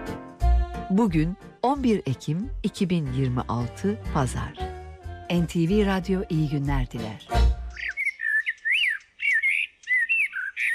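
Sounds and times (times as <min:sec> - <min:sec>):
speech: 0:00.9 - 0:04.7, 0:05.3 - 0:07.4
common blackbird singing: 0:07.7 - 0:10.7.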